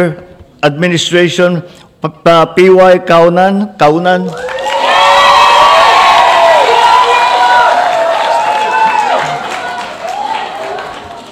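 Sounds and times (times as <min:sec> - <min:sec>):
speech: 0:00.0 - 0:04.6
crowd cheering: 0:04.3 - 0:11.3
audience at an Overseas Welfare Administration event applauding loudly: 0:04.4 - 0:11.3.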